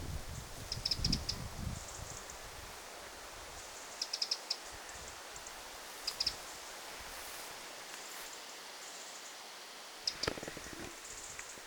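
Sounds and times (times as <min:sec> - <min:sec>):
faint thin hissing notes: 0:00.3 - 0:11.6
Eurasian wren ticking calls: 0:00.7 - 0:02.5, 0:03.6 - 0:06.7, 0:10.0 - 0:11.6.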